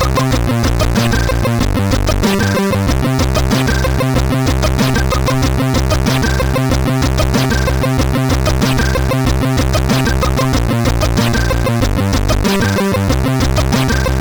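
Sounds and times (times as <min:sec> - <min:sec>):
bad music from a CSG 8580R5 sound chip: 0:00.0 - 0:14.2.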